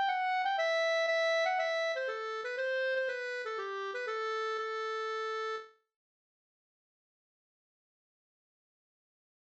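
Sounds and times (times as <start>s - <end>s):
Slangpolska folk dance tune: 0.0s - 5.6s.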